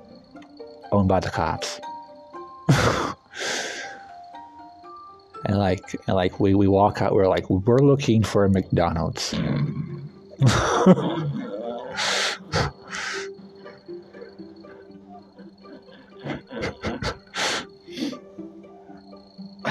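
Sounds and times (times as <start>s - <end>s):
speech: 0.9s - 1.8s, 5.4s - 11.1s
person laughing: 2.7s - 3.3s, 10.4s - 13.3s, 15.4s - 18.2s
person sneezing: 11.8s - 13.3s.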